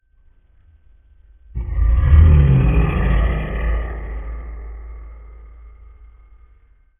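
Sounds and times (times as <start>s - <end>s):
dragon roar: 1.6s - 6.5s.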